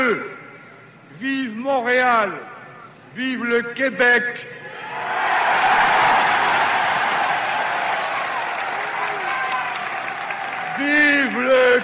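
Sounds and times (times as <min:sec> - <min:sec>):
speech: 0:00.0 - 0:00.4, 0:01.1 - 0:02.5, 0:03.1 - 0:05.3, 0:10.8 - 0:11.8
large crowd applauding and cheering in Montreal after a political speech: 0:05.2 - 0:11.8.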